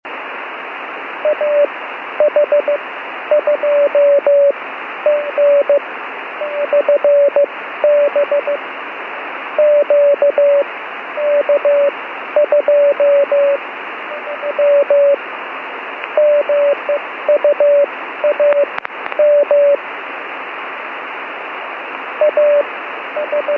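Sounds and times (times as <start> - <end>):
radio beacon on upper sideband: 1.2 - 5.8, 6.4 - 8.6, 9.6 - 15.2, 16.1 - 19.8, 22.2 - 23.5.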